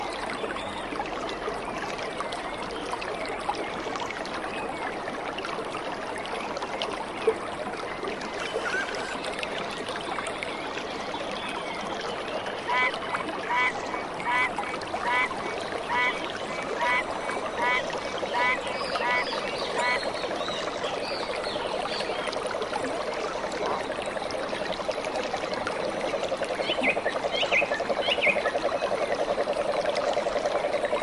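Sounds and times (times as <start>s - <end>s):
tropical rainforest trickling water wash: 0.0s - 31.0s.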